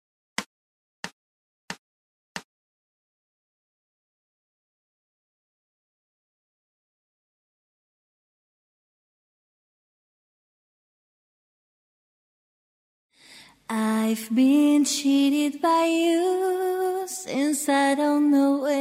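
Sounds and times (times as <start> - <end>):
woman singing lead vocal: 13.7 - 18.7.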